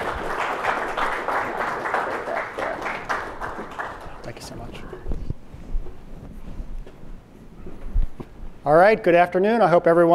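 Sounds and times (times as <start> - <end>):
audience applause: 0.0 - 4.8
speech: 8.7 - 10.1.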